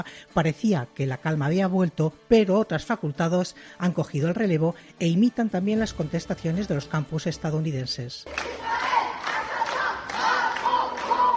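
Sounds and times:
speech: 0:00.0 - 0:08.8
protesters chanting slogans in front of the University of Lyon: 0:08.3 - 0:11.3.

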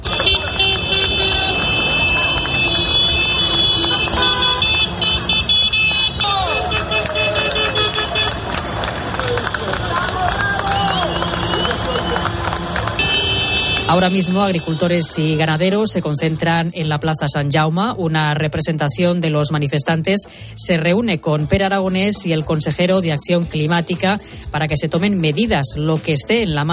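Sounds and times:
horns honking: 0:00.0 - 0:16.5
crowd noise: 0:00.0 - 0:19.4
procession of tractors rumbling: 0:00.0 - 0:24.7
speech: 0:14.0 - 0:26.7.

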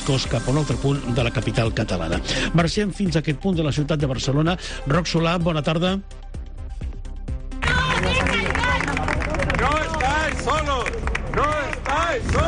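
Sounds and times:
speech: 0:00.1 - 0:06.3
protest crowd outside police headquarters: 0:07.6 - 0:12.4.

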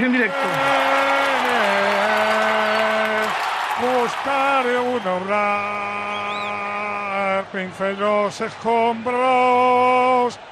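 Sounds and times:
speech: 0:00.0 - 0:00.8, 0:03.8 - 0:06.7, 0:07.3 - 0:10.4
audience applause: 0:00.0 - 0:06.6.

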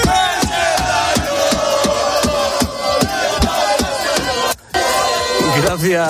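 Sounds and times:
steady rhythmic pounding beats: 0:00.0 - 0:04.7
car horns honking: 0:00.0 - 0:06.0
loud street crowd roaring and chanting: 0:00.0 - 0:06.0.

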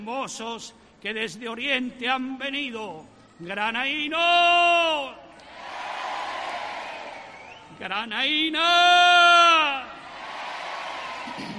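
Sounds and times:
speech: 0:00.0 - 0:05.2, 0:07.8 - 0:09.8
crowd applauding and cheering in plaza: 0:05.5 - 0:07.7, 0:10.1 - 0:11.5.

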